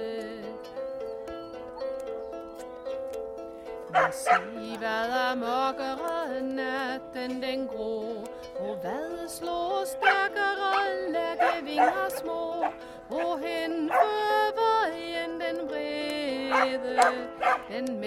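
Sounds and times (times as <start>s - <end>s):
Viking music: 0.0s - 18.0s
Viking singing: 4.0s - 18.0s.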